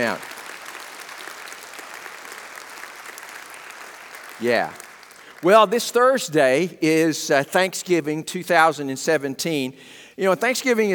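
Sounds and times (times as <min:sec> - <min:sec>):
speech: 0:00.0 - 0:00.3, 0:04.4 - 0:04.8, 0:05.4 - 0:10.9
church congregation at Harmony Hill clapping to welcome new members: 0:00.0 - 0:06.7.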